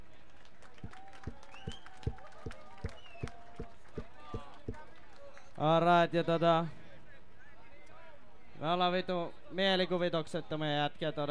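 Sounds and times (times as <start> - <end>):
audience applause: 0.3 - 5.6
speech: 5.6 - 6.8, 8.6 - 11.2.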